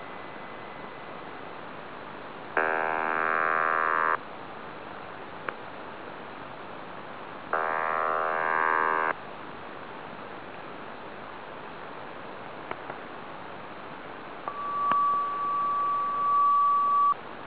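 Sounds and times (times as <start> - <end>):
Digisonde ionospheric sounder signal: 2.6 - 4.2, 7.6 - 9.1, 14.5 - 17.2.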